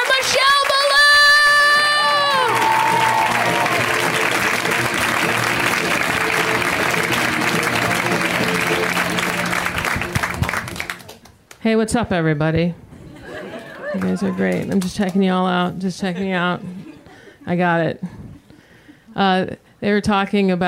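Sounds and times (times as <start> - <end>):
stand-up comedy audience cheering: 0.0 - 11.2
stand-up comedy audience clapping: 0.0 - 11.6, 13.9 - 15.2
speech: 11.6 - 12.8, 14.0 - 16.8, 17.4 - 18.1, 19.2 - 20.6
laughter: 13.0 - 14.7, 16.0 - 17.4.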